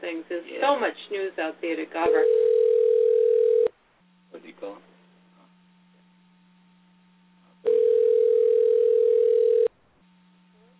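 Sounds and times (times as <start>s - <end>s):
speech: 0.1s - 2.4s
telephone line tone: 2.1s - 3.7s, 7.6s - 9.7s.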